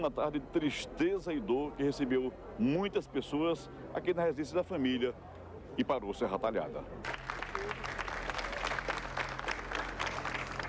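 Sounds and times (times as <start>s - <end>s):
speech: 0.0s - 7.2s
crowd applauding a funeral procession: 7.0s - 10.6s.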